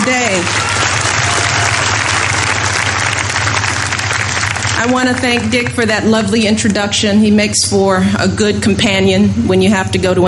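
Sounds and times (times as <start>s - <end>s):
round of applause from a large crowd: 0.0s - 6.1s
speech: 0.1s - 1.1s, 4.8s - 10.2s.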